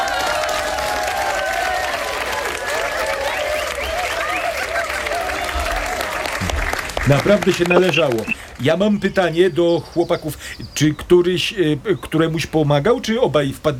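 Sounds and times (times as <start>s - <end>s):
audience applause: 0.0s - 7.4s
speech: 7.1s - 13.7s.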